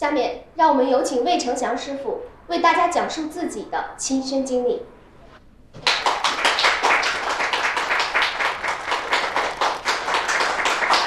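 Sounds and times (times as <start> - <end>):
speech: 0.0 - 4.9
audience applause: 5.8 - 11.0.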